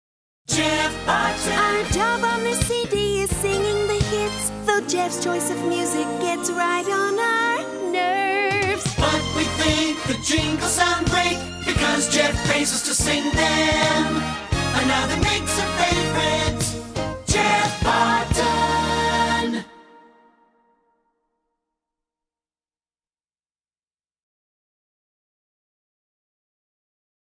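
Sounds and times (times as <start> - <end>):
song: 0.5 - 20.7.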